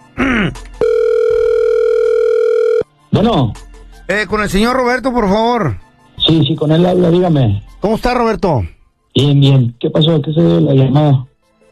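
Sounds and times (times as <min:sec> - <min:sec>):
telephone dial tone while a call is being dialed: 0:00.8 - 0:02.9
speech: 0:03.2 - 0:11.7.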